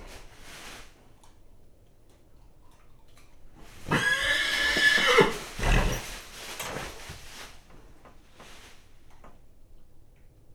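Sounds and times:
nervous agitated horse whinnying in a stable on a farmyard: 0:03.7 - 0:06.1.

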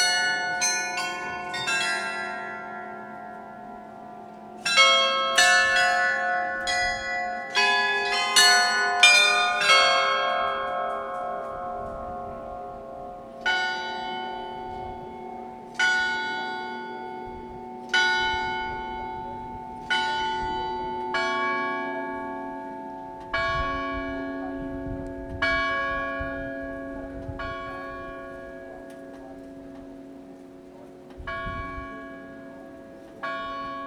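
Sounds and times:
noon carillon of the Loreta church: 0:00.0 - 0:33.8.

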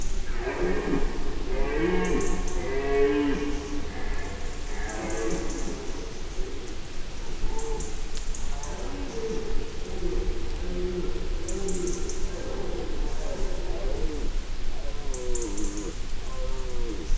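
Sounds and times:
male red deer roaring in nature: 0:00.1 - 0:17.0.

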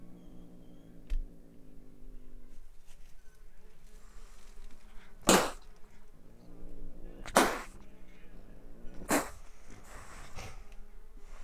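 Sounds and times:
wildcat spitting and hissing: 0:03.9 - 0:11.4.

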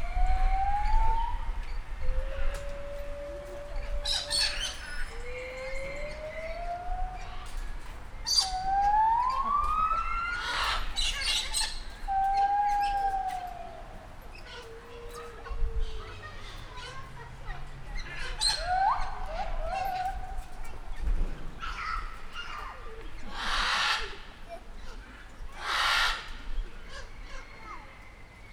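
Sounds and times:
pink cockatoo calling more quietly at a zoo: 0:00.0 - 0:24.6, 0:25.6 - 0:26.3
blue-and-yellow cockatoo calling loudly at a zoo: 0:02.4 - 0:07.7, 0:08.3 - 0:15.2, 0:18.0 - 0:20.8, 0:23.3 - 0:24.2, 0:25.6 - 0:26.3.

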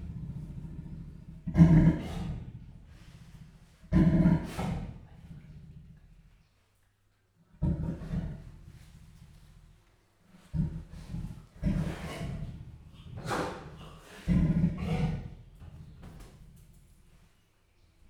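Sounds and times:
leopard growling louder in a zoo: 0:00.0 - 0:06.1, 0:07.6 - 0:08.8, 0:10.4 - 0:16.3.

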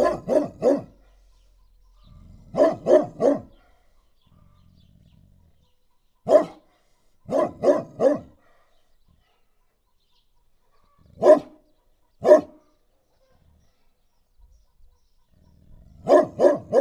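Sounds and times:
dog in a farmyard: 0:00.0 - 0:01.4, 0:02.5 - 0:03.8, 0:06.3 - 0:06.6, 0:07.3 - 0:08.4, 0:11.2 - 0:11.6, 0:12.2 - 0:12.6, 0:15.7 - 0:16.8.

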